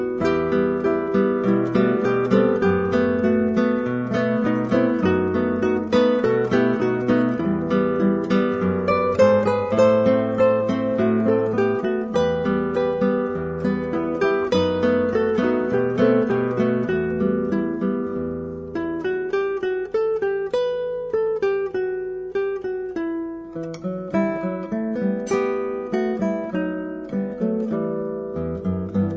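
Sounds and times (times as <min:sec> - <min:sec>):
classical guitar: 0:00.0 - 0:29.1.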